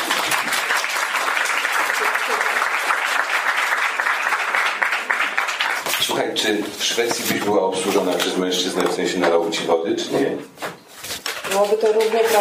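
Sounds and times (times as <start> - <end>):
audience applause: 0.0 - 6.4
speech: 6.3 - 10.6, 11.6 - 12.3.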